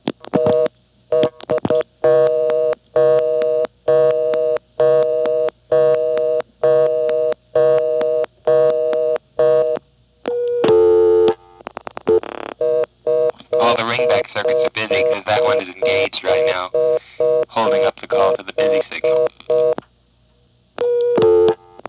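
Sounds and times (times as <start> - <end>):
telephone dial-pulse clicks: 0.2 - 19.9, 20.8 - 21.8
telephone reorder tone after extra digits are dialed: 0.4 - 16.1, 20.8 - 21.8.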